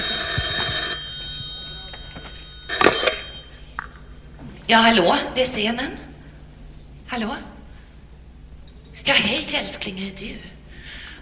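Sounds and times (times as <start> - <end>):
old-fashioned telephone bell ringing: 0.0 - 4.4
low steady hum: 0.0 - 11.2
speech: 4.7 - 6.1, 7.1 - 7.5, 9.0 - 10.5.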